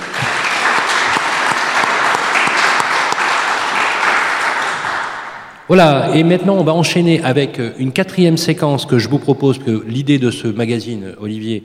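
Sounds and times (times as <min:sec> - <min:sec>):
audience applause: 0:00.0 - 0:05.6
speech: 0:05.7 - 0:11.6.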